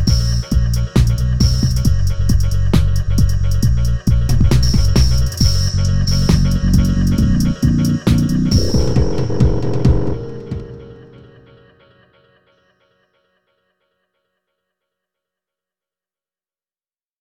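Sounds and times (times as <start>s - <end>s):
thunder dub music: 0.0s - 11.7s.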